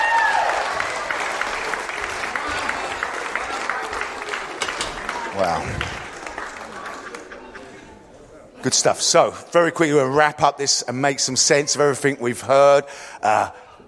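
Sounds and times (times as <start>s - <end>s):
audience clapping: 0.0s - 7.9s
speech: 5.4s - 6.0s, 8.6s - 13.6s.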